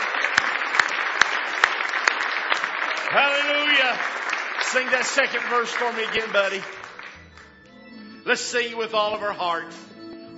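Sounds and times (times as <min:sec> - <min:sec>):
audience hand clapping in praise: 0:00.0 - 0:07.7
speech: 0:03.1 - 0:06.8, 0:08.2 - 0:09.9.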